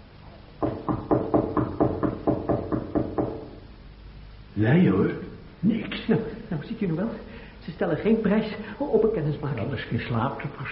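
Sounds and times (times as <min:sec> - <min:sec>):
knocking on a door: 0:00.6 - 0:03.6
speech: 0:04.6 - 0:10.7.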